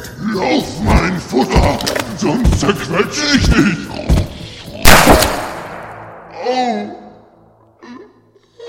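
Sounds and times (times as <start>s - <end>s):
speech: 0.2s - 4.2s
gunshot sound effect in an audio drama: 4.8s - 6.8s.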